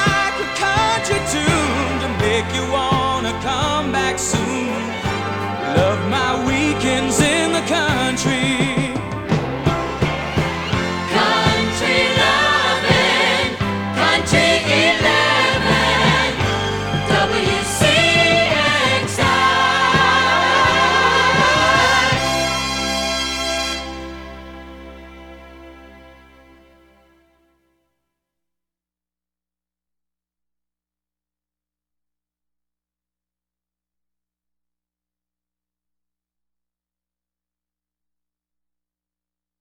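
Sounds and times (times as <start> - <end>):
long country jingle: 0.0 - 26.3.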